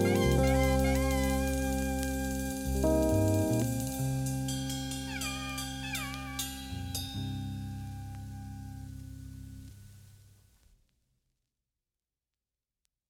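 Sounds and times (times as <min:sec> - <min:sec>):
oriental style music: 0:00.0 - 0:08.6.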